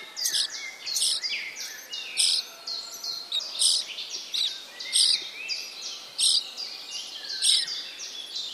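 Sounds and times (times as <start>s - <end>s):
Sturnus vulgaris chick calling: 0.0s - 2.6s, 3.2s - 5.2s, 6.2s - 6.4s, 7.4s - 7.7s.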